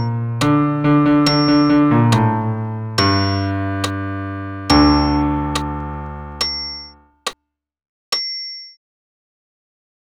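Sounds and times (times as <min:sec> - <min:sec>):
solo piano playing a sacred amen: 0:00.0 - 0:07.2.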